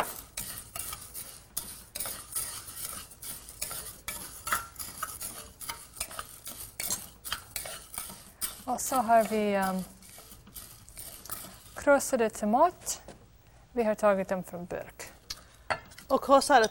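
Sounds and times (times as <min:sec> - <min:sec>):
stirring food in a pan: 0:00.0 - 0:13.0
speech: 0:08.7 - 0:10.0, 0:11.9 - 0:13.0, 0:13.8 - 0:15.0, 0:16.1 - 0:16.7.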